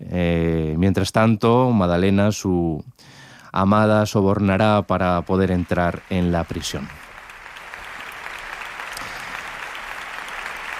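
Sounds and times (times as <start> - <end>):
speech: 0.2 - 7.0
opera audience applause: 5.1 - 10.7.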